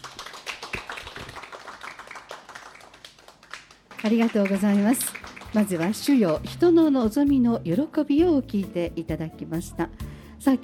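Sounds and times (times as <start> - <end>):
audience clapping: 0.0 - 6.8
speech: 4.0 - 10.6.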